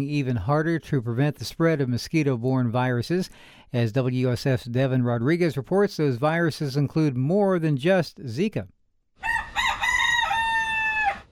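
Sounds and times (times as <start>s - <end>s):
speech: 0.0s - 8.8s
chicken crowing: 9.2s - 11.2s.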